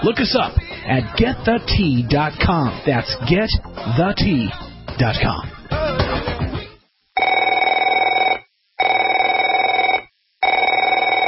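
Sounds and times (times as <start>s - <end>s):
speech: 0.0s - 5.6s
telephone ringing: 7.2s - 11.2s.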